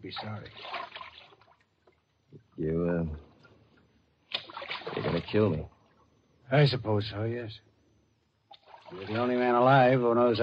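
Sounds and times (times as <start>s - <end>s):
speech: 0.0s - 1.0s, 2.6s - 3.3s, 5.2s - 5.8s, 6.5s - 7.7s, 8.9s - 10.4s
boat paddled through water: 0.5s - 1.6s, 4.3s - 5.4s, 8.6s - 9.5s.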